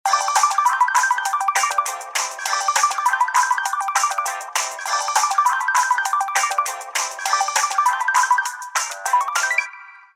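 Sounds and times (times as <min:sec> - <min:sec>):
ringtones: 0:00.1 - 0:10.1.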